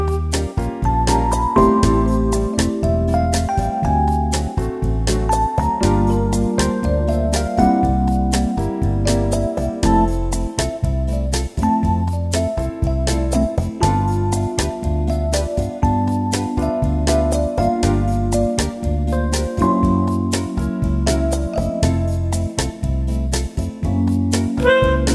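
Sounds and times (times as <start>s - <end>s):
electric piano playing bossa nova: 0.0s - 25.1s
tenor saxophone playing bossa nova: 24.6s - 25.1s.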